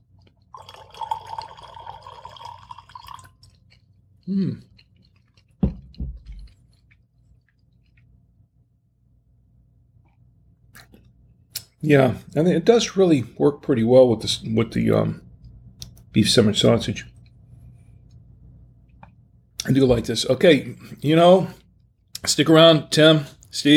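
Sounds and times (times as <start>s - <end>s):
wine pouring into a glass: 0.4s - 3.4s
speech: 4.3s - 4.7s, 11.8s - 15.2s, 16.2s - 17.1s, 19.7s - 21.6s, 22.2s - 23.7s.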